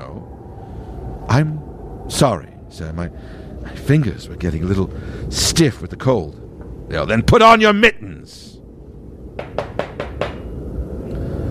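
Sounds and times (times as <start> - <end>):
low rumble: 0.0 - 11.4
speech: 1.3 - 8.6
knocking on a door: 9.4 - 10.4.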